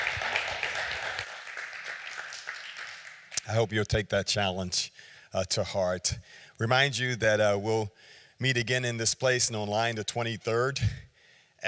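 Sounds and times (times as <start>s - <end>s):
audience clapping: 0.0s - 3.6s
speech: 3.5s - 11.0s.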